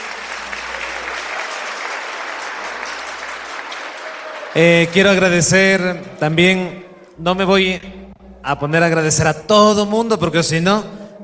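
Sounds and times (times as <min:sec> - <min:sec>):
audience applause: 0:00.0 - 0:05.4
speech: 0:04.5 - 0:11.0.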